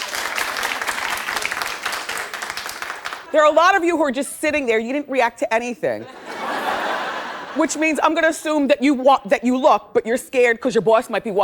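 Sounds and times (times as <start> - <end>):
comedy-show audience applause: 0.0 - 3.4
speech: 3.3 - 6.2, 7.6 - 11.4
laughter: 6.0 - 8.0.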